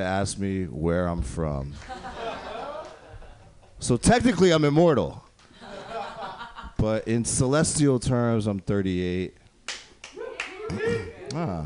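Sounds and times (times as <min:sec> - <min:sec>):
speech: 0:00.0 - 0:02.1, 0:03.8 - 0:05.3, 0:06.8 - 0:09.4, 0:10.7 - 0:11.6
laughter: 0:01.8 - 0:03.7, 0:05.6 - 0:06.8
audience clapping: 0:09.7 - 0:11.4.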